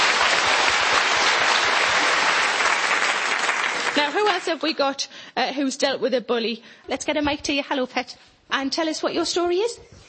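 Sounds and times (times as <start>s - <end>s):
round of applause: 0.0s - 4.6s
speech: 4.0s - 10.0s.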